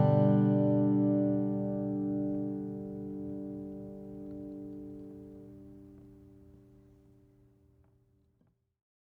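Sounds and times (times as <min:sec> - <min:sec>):
flattop steel string guitar of Brazilian rosewood and Italian spruce: 0:00.0 - 0:06.0.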